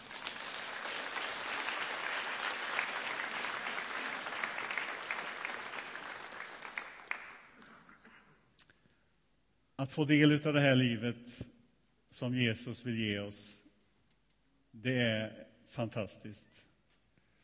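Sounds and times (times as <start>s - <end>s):
audience applause: 0.0s - 7.7s
speech: 9.8s - 11.5s, 12.2s - 13.6s, 14.8s - 16.7s.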